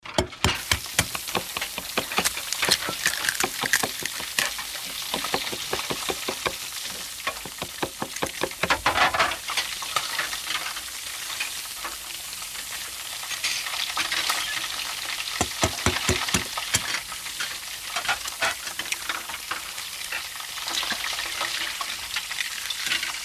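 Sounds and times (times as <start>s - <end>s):
kitchen sizzling: 0.0s - 23.2s
kitchen chopping: 0.1s - 8.8s, 15.4s - 16.9s.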